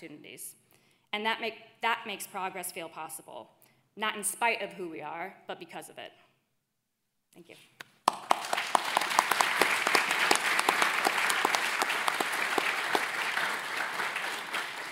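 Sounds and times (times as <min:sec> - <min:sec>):
speech: 0:00.0 - 0:06.2, 0:07.3 - 0:08.2
audience applause: 0:08.1 - 0:14.9.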